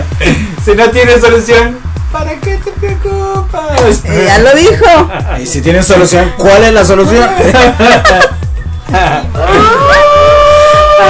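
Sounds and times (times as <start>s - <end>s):
steady thumping low rhythm: 0.0s - 11.0s
speech: 0.2s - 10.0s
laughter: 7.2s - 9.8s
wavering wolf-like howls: 9.4s - 11.0s.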